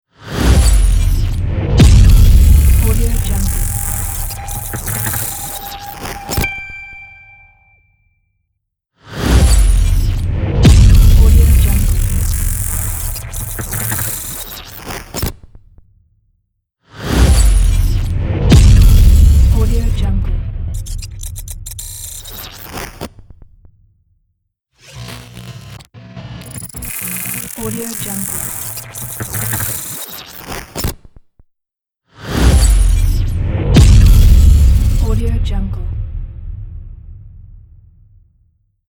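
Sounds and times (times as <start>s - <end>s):
explosion glitch logo: 0.5s - 7.7s, 9.3s - 14.4s, 17.2s - 23.0s, 32.4s - 38.2s.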